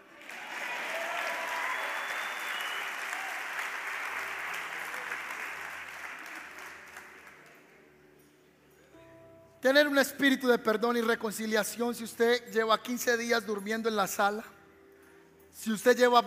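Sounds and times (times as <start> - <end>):
audience applause: 0.0 - 7.7
speech: 9.6 - 14.6, 15.6 - 16.2.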